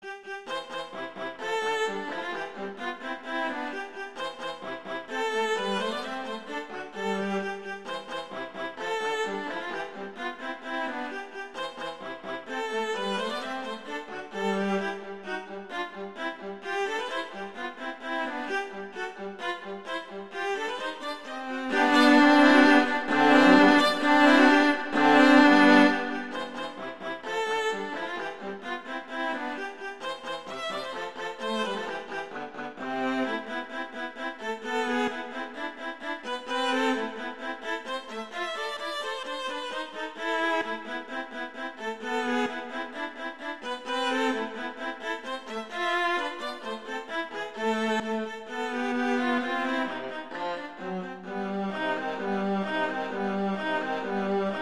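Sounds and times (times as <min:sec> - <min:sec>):
viola duet: 0:00.0 - 0:54.5.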